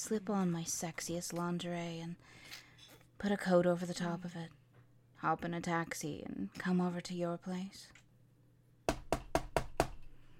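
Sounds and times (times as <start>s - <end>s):
speech: 0.0s - 2.6s, 3.2s - 4.6s, 5.2s - 8.0s
knocking on a door: 8.9s - 10.0s.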